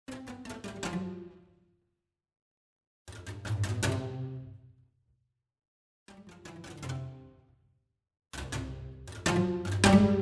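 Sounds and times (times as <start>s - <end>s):
string ensemble: 0.1s - 1.3s, 3.2s - 4.4s, 6.2s - 7.2s, 8.4s - 10.2s.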